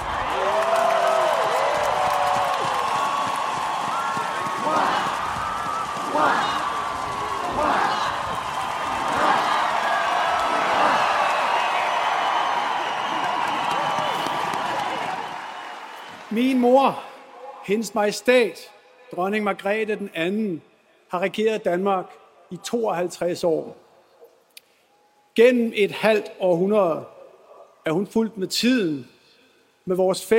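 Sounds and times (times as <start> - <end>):
scattered shouts and whoops: 0.0 - 16.2
large crowd cheering and applauding: 0.0 - 16.7
speech: 16.6 - 17.0, 17.7 - 23.8, 25.4 - 27.1, 27.8 - 29.1, 29.8 - 30.3.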